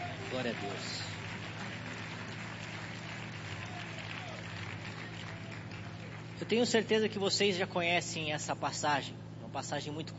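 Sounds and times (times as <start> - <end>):
audience clapping hands: 0.0 - 7.0
speech: 0.3 - 1.1, 6.4 - 10.1.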